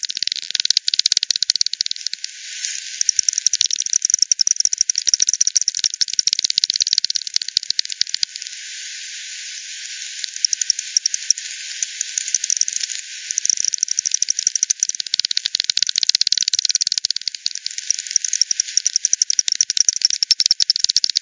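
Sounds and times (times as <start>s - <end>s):
bats echolocating clicks: 0.0s - 8.6s, 9.8s - 21.1s.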